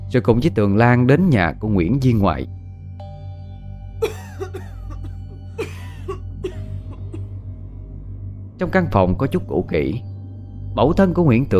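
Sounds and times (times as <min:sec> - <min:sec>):
speech: 0:00.1 - 0:02.6, 0:08.6 - 0:10.1, 0:10.8 - 0:11.5
dry coughing: 0:04.0 - 0:07.2.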